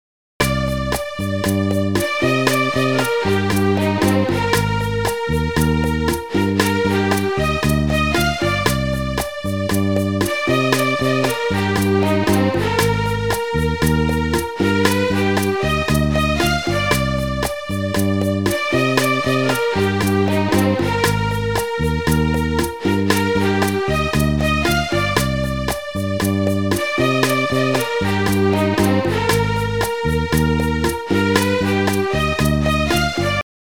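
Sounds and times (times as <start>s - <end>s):
bossa nova music: 0.4s - 33.4s.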